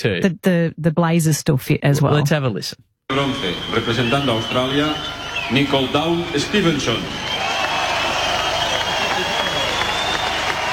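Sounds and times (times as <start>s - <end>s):
speech: 0.0s - 7.3s
large outdoor crowd applauding and cheering at medal ceremony: 3.1s - 10.7s.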